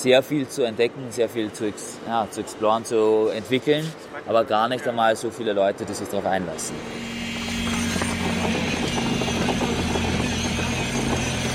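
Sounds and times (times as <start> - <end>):
speech: 0.0 - 7.4
electric vibrator rods compacting clay, humming: 6.6 - 11.5.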